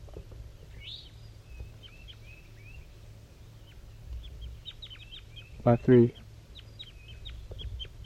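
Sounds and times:
wild bird chirping and whistling calls: 0:00.6 - 0:08.0
speech: 0:05.6 - 0:06.2.

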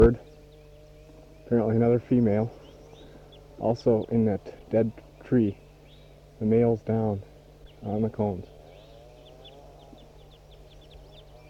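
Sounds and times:
recorded and wild bird calls: 0:00.0 - 0:11.4
speech: 0:01.5 - 0:02.6, 0:03.6 - 0:05.6, 0:06.4 - 0:08.5.

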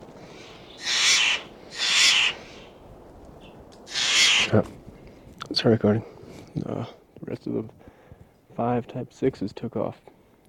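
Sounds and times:
Steller's jays calling: 0:00.0 - 0:04.6
speech: 0:04.5 - 0:04.8, 0:05.5 - 0:07.9, 0:08.6 - 0:10.1.

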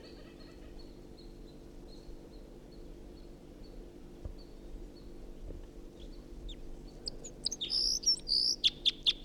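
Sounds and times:
wild bird singing: 0:06.0 - 0:09.2.

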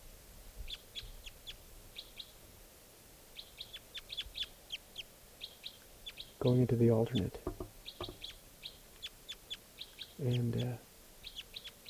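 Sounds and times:
soft low hiss: 0:00.0 - 0:11.8
single bird chirping: 0:00.6 - 0:02.4, 0:03.3 - 0:11.8
speech: 0:06.4 - 0:07.5, 0:10.2 - 0:10.9.

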